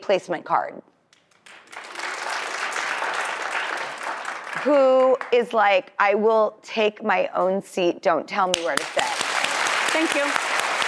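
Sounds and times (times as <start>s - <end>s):
speech: 0.0s - 0.9s, 4.6s - 9.0s, 10.0s - 10.4s
audience clapping: 1.2s - 5.5s, 8.5s - 10.8s.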